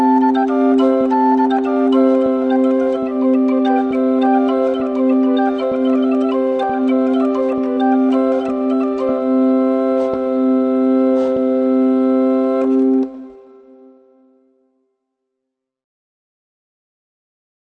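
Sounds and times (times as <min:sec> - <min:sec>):
portative organ intrada: 0:00.0 - 0:14.1.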